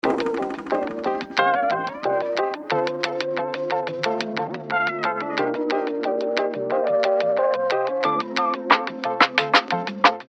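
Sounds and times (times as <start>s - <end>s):
music: 0.0s - 10.2s.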